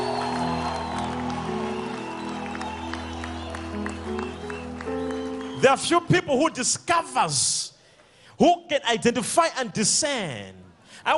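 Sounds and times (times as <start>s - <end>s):
audience clapping hands: 0.0s - 6.6s
speech: 5.6s - 7.7s, 8.4s - 11.1s.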